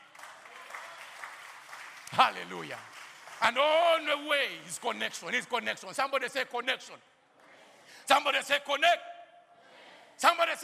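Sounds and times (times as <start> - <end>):
audience applause: 0.0 - 4.3
speech: 2.1 - 7.1, 8.1 - 9.1, 10.2 - 10.6.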